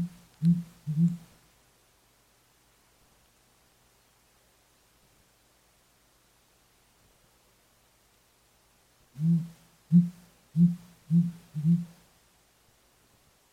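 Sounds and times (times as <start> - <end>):
male sooty grouse calling: 0.0 - 1.2, 9.2 - 11.9.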